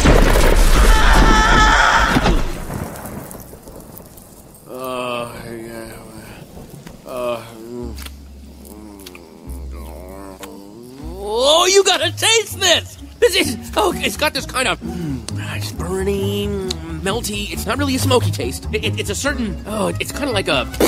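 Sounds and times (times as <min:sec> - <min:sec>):
approaching thunderstorm: 0:00.0 - 0:07.7
speech: 0:12.4 - 0:15.0, 0:15.6 - 0:20.8.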